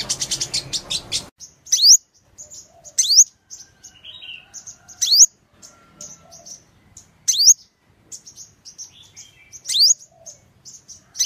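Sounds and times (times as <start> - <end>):
sunbird soft twitters and trills: 0.0 - 11.2.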